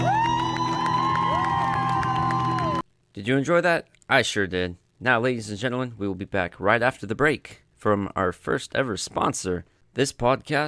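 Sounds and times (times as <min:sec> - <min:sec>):
audience clapping: 0:00.0 - 0:02.8
speech: 0:03.2 - 0:10.6.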